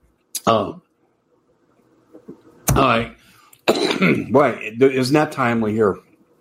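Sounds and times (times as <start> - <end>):
speech: 0.5 - 0.8, 2.8 - 6.1
person coughing while choking up during a talk: 3.7 - 4.3.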